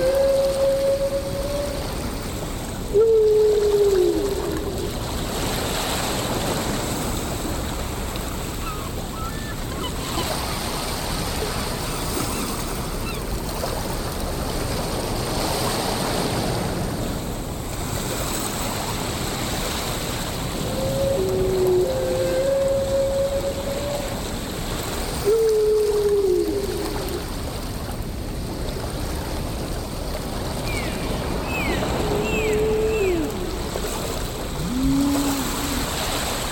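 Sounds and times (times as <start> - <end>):
whales: 0.0 - 7.4, 8.4 - 13.8, 20.4 - 27.6, 30.6 - 36.5
ocean: 0.0 - 36.5.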